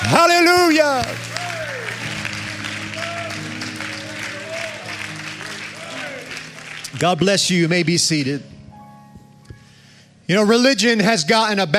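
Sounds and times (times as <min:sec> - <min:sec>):
audience clapping hands in praise: 0:00.0 - 0:08.4
speech: 0:00.1 - 0:01.3, 0:07.0 - 0:08.6, 0:10.3 - 0:11.7.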